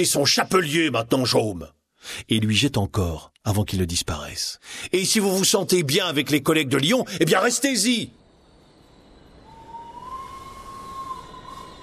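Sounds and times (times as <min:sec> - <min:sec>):
speech: 0:00.0 - 0:08.2
train arriving at Lyon-Perrache station hissing: 0:09.6 - 0:11.8.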